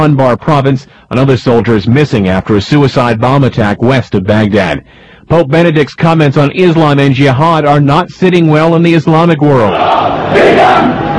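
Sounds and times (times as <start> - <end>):
speech: 0.0 - 11.1
crowd shouting at a protest in Cairo: 9.7 - 11.1.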